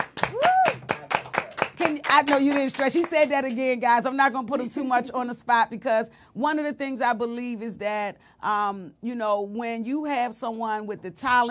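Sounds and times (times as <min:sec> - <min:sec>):
people clapping: 0:00.0 - 0:03.7
speech: 0:02.1 - 0:11.4.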